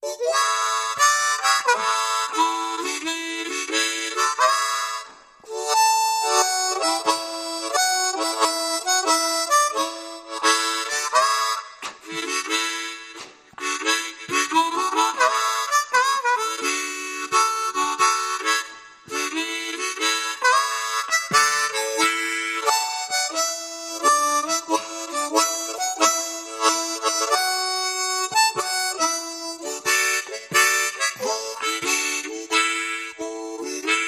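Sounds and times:
mouth organ playing: 0:00.0 - 0:34.0.

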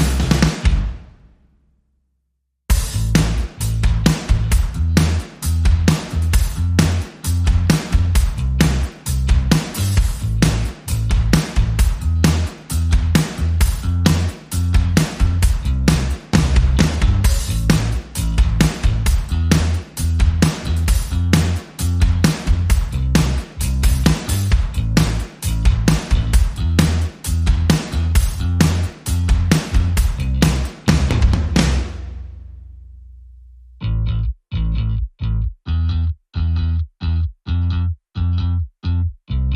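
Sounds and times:
drums: 0:00.0 - 0:01.4, 0:02.7 - 0:32.6
bass: 0:00.0 - 0:01.5, 0:02.7 - 0:39.5.

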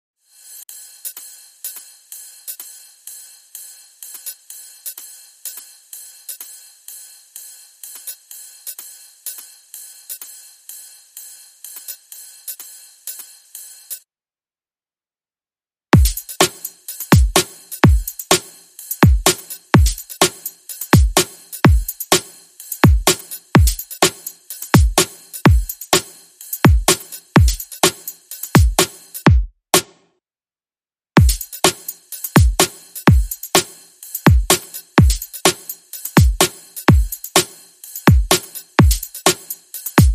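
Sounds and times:
drum beats: 0:15.9 - 0:30.0, 0:31.2 - 0:40.1.

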